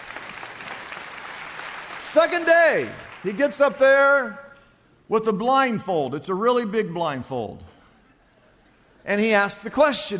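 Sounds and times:
audience applauding: 0:00.0 - 0:03.6
speech: 0:02.1 - 0:04.4, 0:05.1 - 0:07.7, 0:09.0 - 0:10.1.

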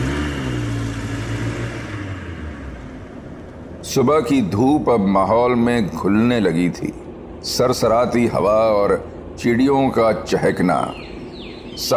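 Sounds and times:
police jeep engine driving off: 0:00.0 - 0:05.3
speech: 0:03.9 - 0:11.1, 0:11.8 - 0:11.9.

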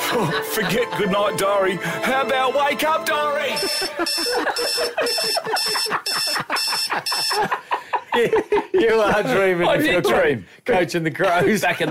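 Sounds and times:
laughter: 0:00.0 - 0:01.4, 0:03.5 - 0:10.3, 0:11.2 - 0:11.8
speech: 0:00.1 - 0:11.8
alarm clock ringing: 0:03.5 - 0:07.6.

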